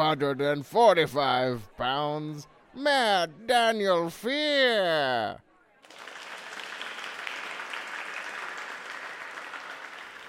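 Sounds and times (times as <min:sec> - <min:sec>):
speech: 0:00.1 - 0:05.5
audience applause: 0:05.8 - 0:10.2.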